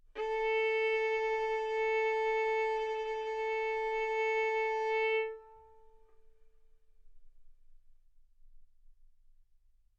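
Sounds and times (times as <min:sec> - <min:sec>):
violin bowed arco notes: 0:00.1 - 0:06.2.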